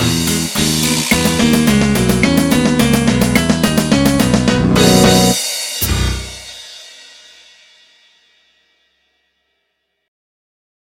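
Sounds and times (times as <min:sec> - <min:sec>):
unswung jazz music: 0:00.0 - 0:06.8.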